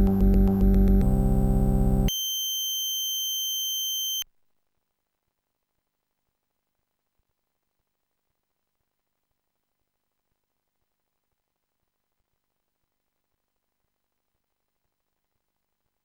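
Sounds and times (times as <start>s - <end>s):
modem sounds music: 0.0s - 3.3s.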